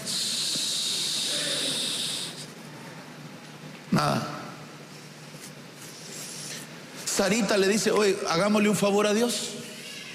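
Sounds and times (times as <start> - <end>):
voice imitating sand trickling through an hourglass: 0.0 - 2.4
speech: 4.0 - 4.4, 7.2 - 9.6.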